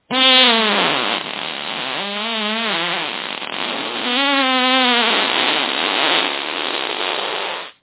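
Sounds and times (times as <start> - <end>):
farts: 0.1 - 7.8.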